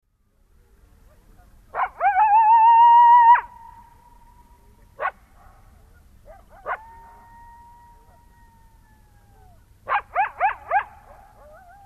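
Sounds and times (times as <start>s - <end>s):
coyotes howling and yipping in chorus: 1.1s - 4.2s, 5.8s - 11.8s.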